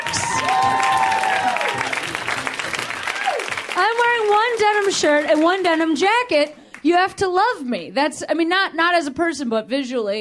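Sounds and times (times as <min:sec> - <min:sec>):
audience round of applause: 0:00.0 - 0:06.8
speech: 0:04.9 - 0:10.2.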